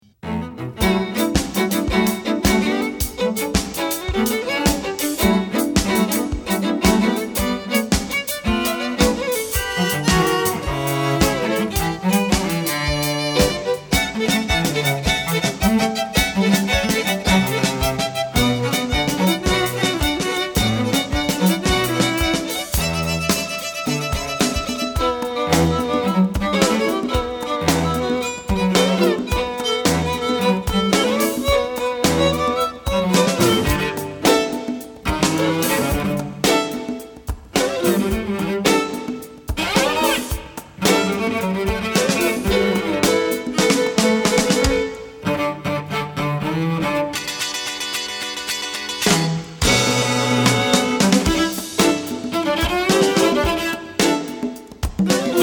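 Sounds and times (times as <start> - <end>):
string quartet: 0.1 - 55.4.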